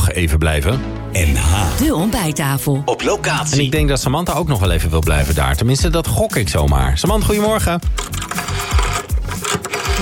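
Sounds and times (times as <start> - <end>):
speech: 0.2 - 8.4
rotary dial on old bakelite telephone whirring and clicking: 8.0 - 10.0.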